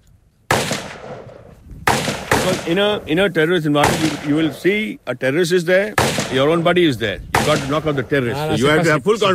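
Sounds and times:
gunshot fired at a pinpoint target during shooting training: 0:00.5 - 0:02.9, 0:03.8 - 0:04.6, 0:06.0 - 0:06.7, 0:07.3 - 0:08.0
speech: 0:02.5 - 0:09.3.

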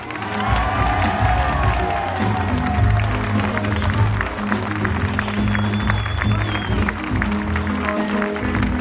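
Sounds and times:
crowd applauding Marine Le Pen at a political rally in Hénin-Beaumont: 0:00.0 - 0:08.7.

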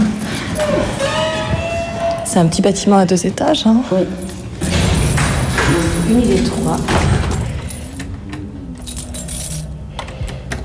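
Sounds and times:
keys jangling: 0:00.0 - 0:01.0, 0:04.1 - 0:10.6
low rumbling background: 0:00.0 - 0:10.6
speech: 0:02.3 - 0:04.4, 0:06.1 - 0:07.2.

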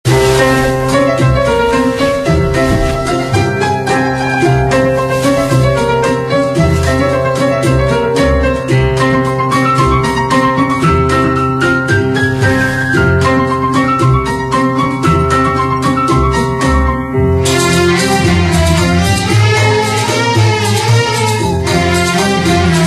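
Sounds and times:
Arabic music: 0:00.1 - 0:22.8.

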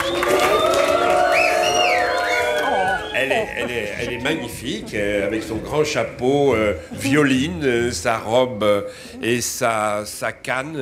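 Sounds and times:
crowd applauding: 0:00.0 - 0:04.8
laughter: 0:02.6 - 0:05.9
speech: 0:03.3 - 0:10.8.

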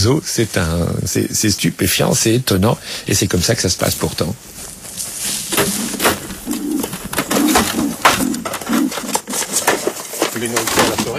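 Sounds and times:
speech: 0:00.0 - 0:04.7
wood pigeons cooing: 0:05.2 - 0:11.1.

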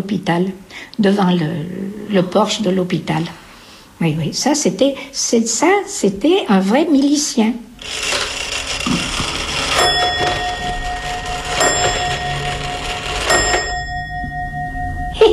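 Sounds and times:
speech: 0:00.0 - 0:03.4, 0:04.0 - 0:09.1
old Swiss clock chiming: 0:07.8 - 0:15.3.

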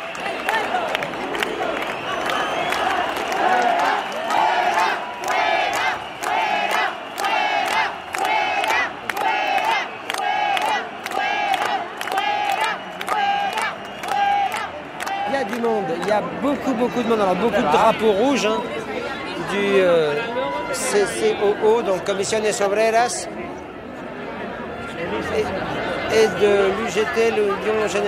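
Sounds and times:
large protest crowd chanting dehors: 0:00.0 - 0:19.8
speech: 0:16.2 - 0:18.9, 0:19.5 - 0:23.4, 0:25.3 - 0:28.0.

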